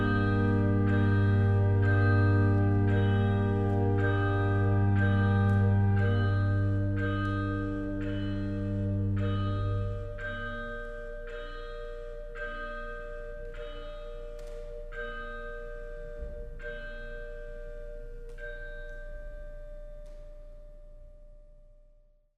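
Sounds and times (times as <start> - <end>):
organ: 0.0 - 11.9.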